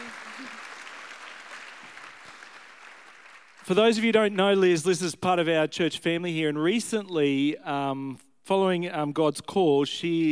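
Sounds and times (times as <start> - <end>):
audience applause welcoming a guest speaker at a church gathering: 0.0 - 3.7
speech: 3.7 - 10.3.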